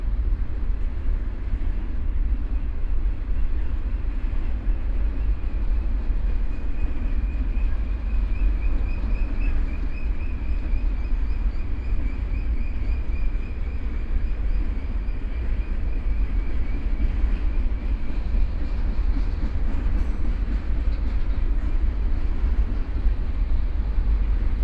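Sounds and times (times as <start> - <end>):
freight train: 0.0 - 24.6.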